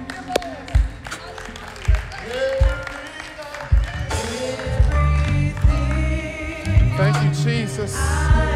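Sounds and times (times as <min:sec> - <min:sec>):
audience applause: 0:00.0 - 0:06.7
speech: 0:07.7 - 0:08.4.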